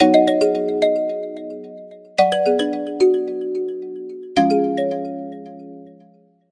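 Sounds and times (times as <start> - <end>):
ethereal ringtone: 0.0 - 6.2.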